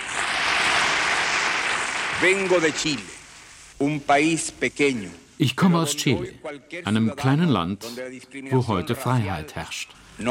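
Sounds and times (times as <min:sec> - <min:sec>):
applause from the UN General Assembly greeting Salvador Allende: 0:00.0 - 0:03.4
speech: 0:02.2 - 0:03.2, 0:03.8 - 0:10.2.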